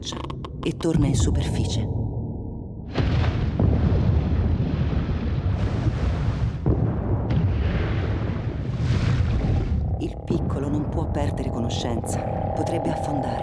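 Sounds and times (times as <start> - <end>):
speech: 0.0 - 2.0, 11.0 - 13.4
explosions: 2.9 - 9.9.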